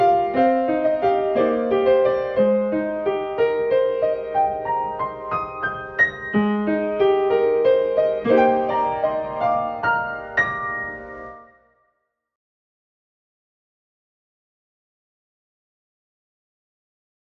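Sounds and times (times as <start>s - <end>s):
piano in a piano shop: 0.0s - 12.1s.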